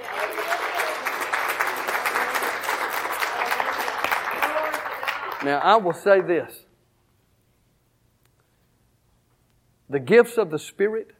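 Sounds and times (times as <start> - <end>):
audience hand clapping: 0.0 - 6.5
speech: 5.4 - 6.7, 9.9 - 11.1.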